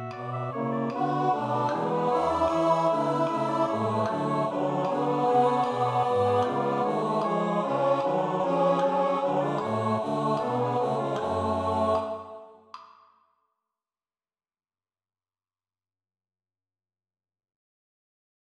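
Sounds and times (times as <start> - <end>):
tenor singing: 0.0 - 12.5.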